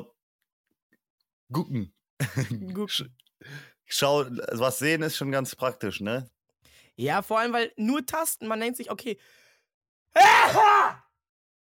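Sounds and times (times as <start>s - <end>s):
speech: 1.5s - 6.4s, 7.0s - 9.4s, 10.1s - 11.0s
laughter: 2.2s - 2.8s
loud voiced sneeze: 10.2s - 11.0s.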